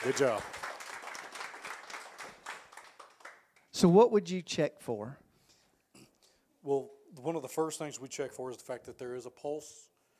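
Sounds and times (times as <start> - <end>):
speech: 0.0 - 0.6, 3.8 - 5.2, 6.6 - 9.9
audience applause at a CPR training demonstration: 0.0 - 3.7.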